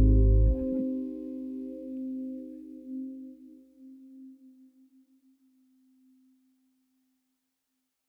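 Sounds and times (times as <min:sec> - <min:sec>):
funk music for kids: 0:00.0 - 0:00.7.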